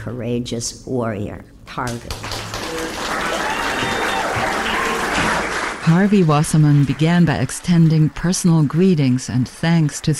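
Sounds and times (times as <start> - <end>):
speech: 0.0 - 2.9, 5.8 - 10.1
audience applause: 2.1 - 10.1.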